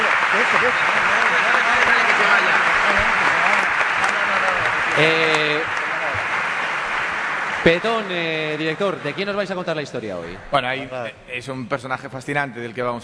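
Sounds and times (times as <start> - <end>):
audience applause: 0.0 - 10.4
speech: 0.5 - 1.0, 5.0 - 5.2, 7.6 - 13.0.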